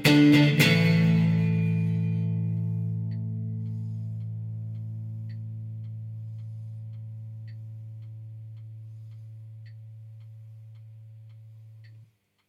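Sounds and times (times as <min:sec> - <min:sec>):
guitar through an Eventide TVerb reverb insert: 0:00.0 - 0:03.8.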